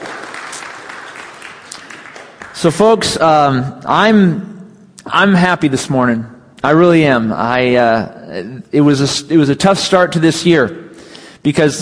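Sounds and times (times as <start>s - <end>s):
audience applause: 0.0s - 2.8s
speech: 2.6s - 10.8s, 11.4s - 11.8s.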